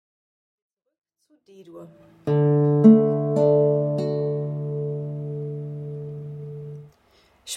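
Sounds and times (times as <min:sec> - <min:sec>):
chord changes D G A7: 0:01.9 - 0:06.9.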